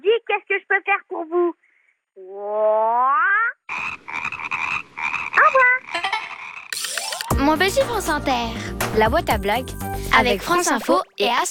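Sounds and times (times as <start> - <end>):
frog croaking: 2.2 - 7.3
speech: 7.5 - 11.4.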